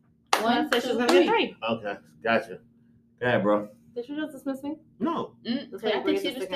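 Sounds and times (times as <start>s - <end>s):
hand claps: 0.3s - 1.4s
people talking: 0.4s - 2.6s, 3.2s - 6.5s.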